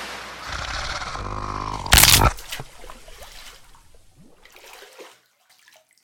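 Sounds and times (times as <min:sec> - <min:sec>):
monster attack: 0:00.4 - 0:03.1.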